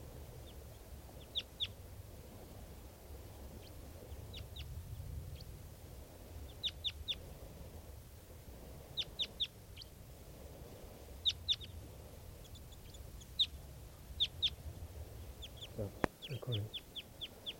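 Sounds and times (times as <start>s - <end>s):
bird calling: 0.4s - 1.9s, 3.2s - 5.5s, 6.4s - 7.4s, 8.9s - 9.9s, 11.2s - 17.5s
speech: 15.8s - 16.8s.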